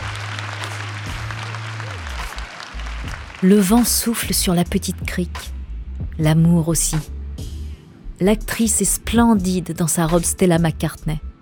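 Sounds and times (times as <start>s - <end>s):
applause from wedding guests: 0.0s - 3.9s
speech: 3.4s - 5.6s, 6.2s - 7.1s, 8.2s - 11.3s.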